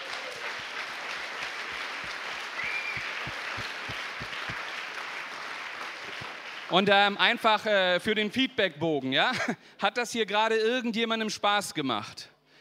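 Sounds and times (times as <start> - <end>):
applause: 0.0 - 7.3
speech: 6.7 - 12.3.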